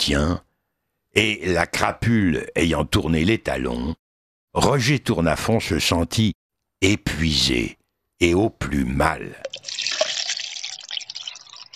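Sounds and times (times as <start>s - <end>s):
speech: 0.0s - 0.5s, 1.2s - 9.8s
water poured into a glass: 9.4s - 11.7s.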